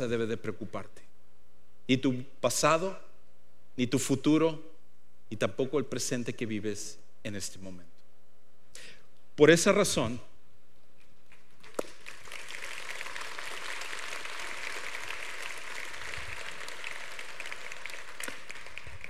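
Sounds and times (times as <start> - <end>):
speech: 0.0 - 1.2, 1.9 - 3.1, 3.8 - 4.7, 5.3 - 7.9, 8.8 - 10.3
single person clapping: 11.6 - 19.0.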